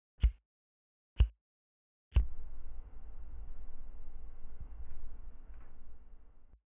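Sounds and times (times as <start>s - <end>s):
lighter: 0.2s - 0.4s, 2.1s - 2.4s.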